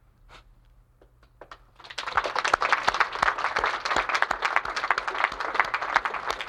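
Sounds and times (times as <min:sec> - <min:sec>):
tepid audience applause: 0:01.8 - 0:06.4.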